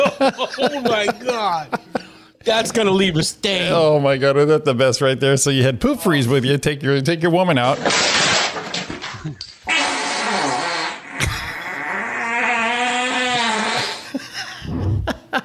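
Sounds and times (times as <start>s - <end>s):
laughter: 0.0s - 2.3s, 14.0s - 15.4s
speech: 0.2s - 8.4s, 9.2s - 9.5s
loud fart: 7.9s - 15.2s.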